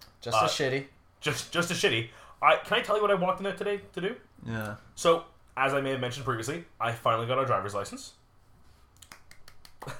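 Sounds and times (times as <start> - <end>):
speech: 0.2 - 8.2
hand clapping: 9.0 - 9.9.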